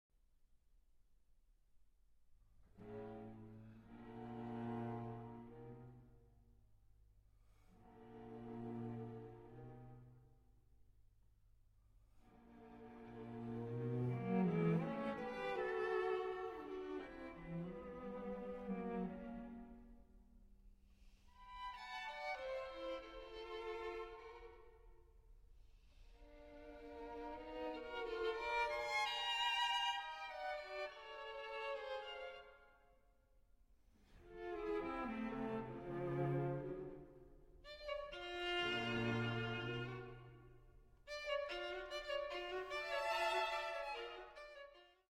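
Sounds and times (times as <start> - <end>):
string quartet playing an allegretto in A minor: 2.8 - 6.0, 12.4 - 19.9, 21.4 - 24.6, 26.3 - 32.5, 34.2 - 40.4, 41.1 - 44.8.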